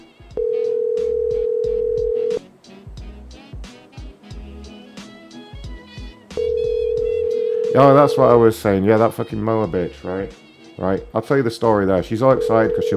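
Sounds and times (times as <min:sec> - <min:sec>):
rhythmic telephone clicks and tones: 0:00.4 - 0:02.4, 0:06.4 - 0:08.4
steady telephone tone from a mis-dialed call: 0:00.4 - 0:02.4, 0:06.4 - 0:08.2, 0:12.4 - 0:12.9
speech: 0:07.8 - 0:12.9.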